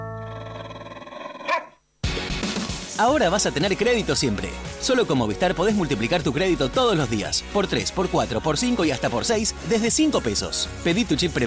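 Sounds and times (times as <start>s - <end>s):
dog barking: 1.4s - 1.8s
speech: 3.0s - 11.4s.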